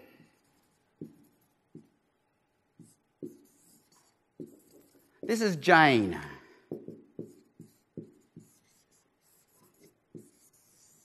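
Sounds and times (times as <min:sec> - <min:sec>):
pen drawing on paper: 0:00.0 - 0:01.9, 0:02.7 - 0:05.2, 0:06.7 - 0:11.0
speech: 0:05.3 - 0:06.3.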